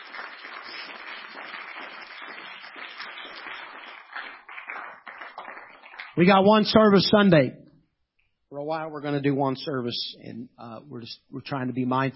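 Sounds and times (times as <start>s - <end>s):
audience clapping hands: 0.0s - 6.4s
speech: 6.2s - 7.6s, 8.6s - 12.1s.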